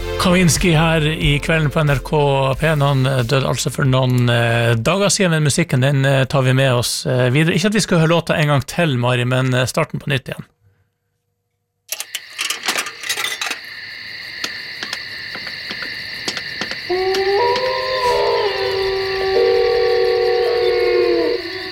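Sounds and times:
speech: 0:00.2 - 0:10.5
wolf howling: 0:16.6 - 0:21.7.

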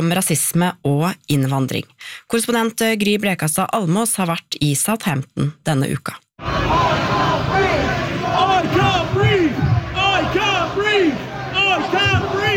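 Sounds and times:
speech: 0:00.0 - 0:06.8
angry crowd chanting rhythmically: 0:06.4 - 0:12.5.

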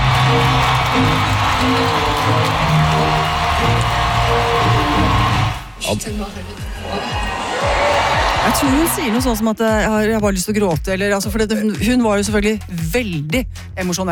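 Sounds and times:
concert crowd roaring and cheering: 0:00.0 - 0:05.9, 0:06.6 - 0:09.4
speech: 0:05.9 - 0:07.2, 0:08.4 - 0:14.0.

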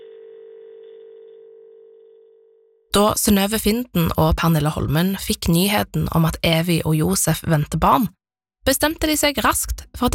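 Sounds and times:
telephone dial tone after hanging up: 0:00.0 - 0:02.9
speech: 0:03.0 - 0:10.1.

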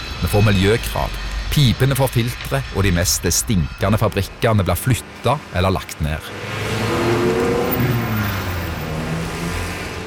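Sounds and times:
speech: 0:00.2 - 0:06.6
car engine revving: 0:02.4 - 0:10.0.

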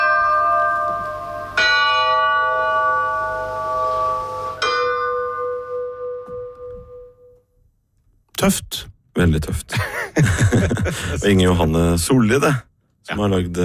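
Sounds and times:
farm dinner bell ringing: 0:00.0 - 0:07.4
speech: 0:08.4 - 0:13.6
laughter: 0:09.7 - 0:11.4.

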